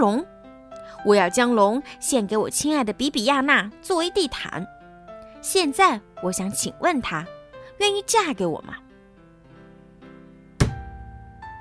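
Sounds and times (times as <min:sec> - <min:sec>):
speech: 0:00.0 - 0:00.3, 0:00.9 - 0:04.8, 0:05.4 - 0:08.8
fist slamming down on table: 0:10.6 - 0:11.0.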